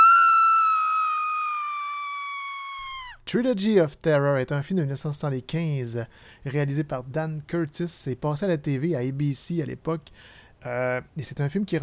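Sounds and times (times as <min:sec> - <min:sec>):
woman screaming: 0:00.0 - 0:03.2
speech: 0:03.3 - 0:11.8.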